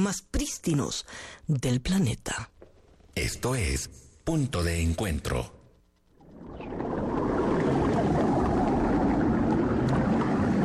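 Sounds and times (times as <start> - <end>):
speech: 0.0 - 2.5, 3.2 - 5.6
underwater sound of the sea floor: 5.8 - 10.6.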